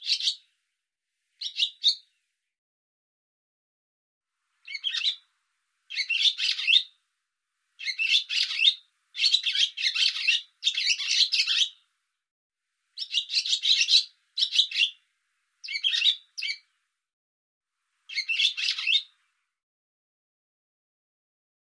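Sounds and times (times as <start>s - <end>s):
bird uttering rapid scratchy high-pitched chatter: 4.7s - 5.2s, 5.9s - 6.9s, 7.8s - 11.8s, 13.0s - 15.0s, 15.6s - 16.6s, 18.1s - 19.1s.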